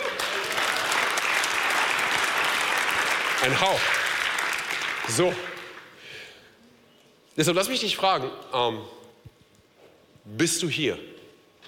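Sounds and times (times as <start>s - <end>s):
audience applause: 0.0s - 6.0s
speech: 3.4s - 4.0s, 5.1s - 5.5s, 7.4s - 9.0s, 10.3s - 11.1s.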